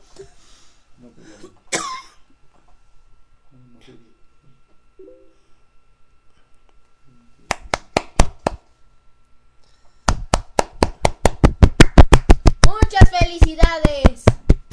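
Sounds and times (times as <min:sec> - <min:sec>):
speech: 0:01.0 - 0:01.6, 0:03.5 - 0:04.1
cough: 0:01.4 - 0:02.3
hands clapping: 0:07.5 - 0:08.6, 0:10.1 - 0:14.7.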